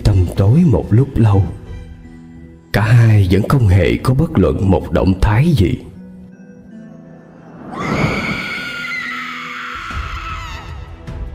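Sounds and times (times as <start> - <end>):
speech: 0.3 - 1.6, 2.8 - 5.9
eerie ghostly shriek: 7.4 - 11.0.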